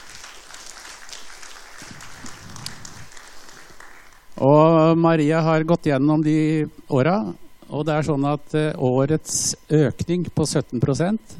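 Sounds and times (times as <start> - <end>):
audience applause: 0.0 - 4.3
speech: 4.4 - 11.3.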